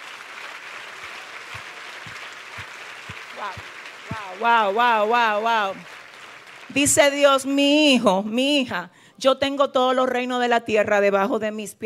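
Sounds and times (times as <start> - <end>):
audience applause: 0.0 - 7.8
speech: 3.4 - 5.9, 6.7 - 11.8.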